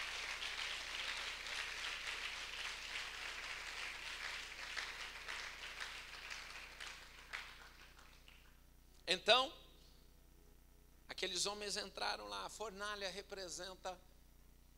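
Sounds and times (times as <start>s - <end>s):
crowd clapping: 0.0s - 8.6s
speech: 9.2s - 9.6s, 11.4s - 14.1s.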